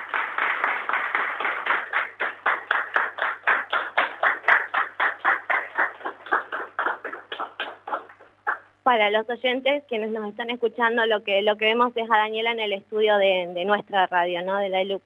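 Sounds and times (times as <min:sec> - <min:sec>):
rhythmic audience applause: 0:00.0 - 0:08.7
speech: 0:08.9 - 0:15.0.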